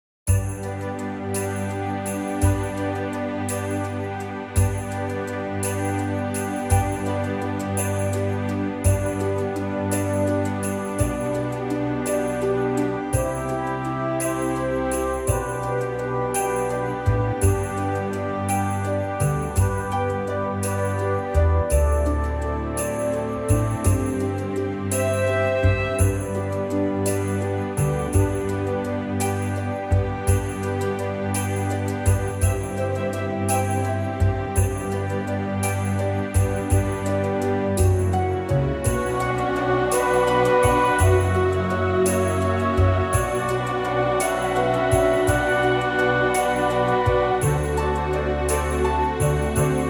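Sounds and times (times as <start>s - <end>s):
orchestra playing in G: 0.3s - 49.8s.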